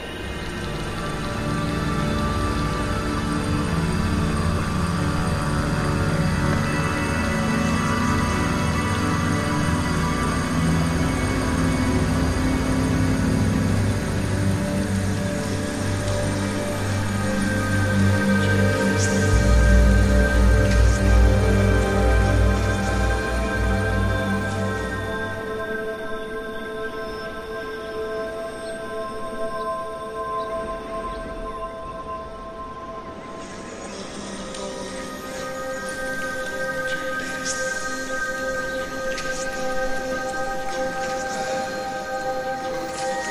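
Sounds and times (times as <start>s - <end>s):
summer countryside wind: 0.0s - 43.2s
sustained ambient music: 0.0s - 43.2s.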